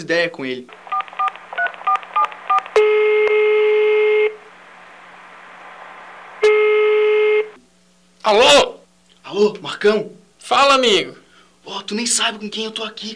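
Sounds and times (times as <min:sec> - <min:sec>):
speech: 0:00.0 - 0:00.8, 0:08.2 - 0:13.1
phone keypad tones: 0:00.8 - 0:03.5
phone ringing tones: 0:00.9 - 0:04.5, 0:06.4 - 0:07.6.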